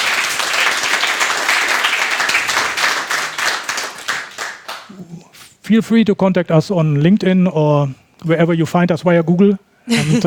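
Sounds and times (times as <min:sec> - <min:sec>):
audience applause: 0:00.0 - 0:04.9
speech: 0:05.7 - 0:10.2.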